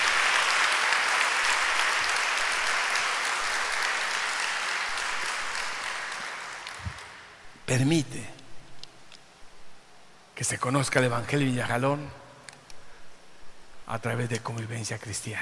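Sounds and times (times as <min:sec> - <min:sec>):
audience applause: 0:00.0 - 0:07.6
speech: 0:07.7 - 0:08.4, 0:10.4 - 0:12.2, 0:13.9 - 0:15.4.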